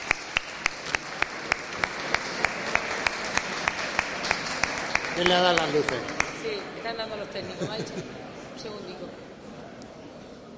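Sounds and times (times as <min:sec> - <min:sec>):
audience applause: 0:00.0 - 0:06.4
speech: 0:05.2 - 0:09.3.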